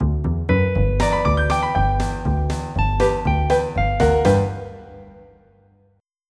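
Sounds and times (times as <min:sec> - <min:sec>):
country music: 0:00.6 - 0:05.2.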